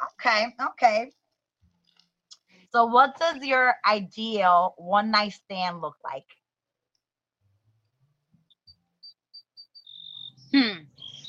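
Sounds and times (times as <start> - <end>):
speech: 0.2 - 1.2, 2.7 - 6.4
birds chirping: 8.5 - 11.2.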